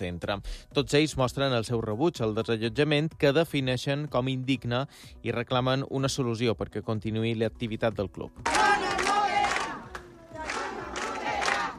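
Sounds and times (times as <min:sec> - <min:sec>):
speech: 0:00.0 - 0:08.8
protesting neighbours shouting in unison: 0:08.4 - 0:11.7.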